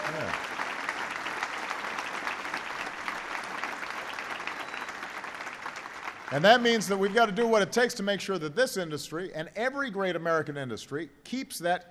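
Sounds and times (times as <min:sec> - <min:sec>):
audience cheering: 0:00.0 - 0:07.5
speech: 0:06.3 - 0:11.9.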